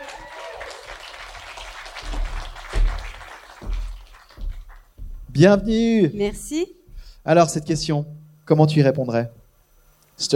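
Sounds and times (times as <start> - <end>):
audience applause: 0.0 - 5.0
speech: 5.4 - 9.4, 10.2 - 10.3.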